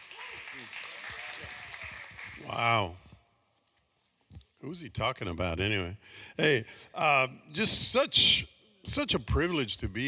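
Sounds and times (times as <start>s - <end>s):
audience applause welcoming a speaker at a church: 0.0s - 2.5s
speech: 2.5s - 3.0s, 4.6s - 10.0s.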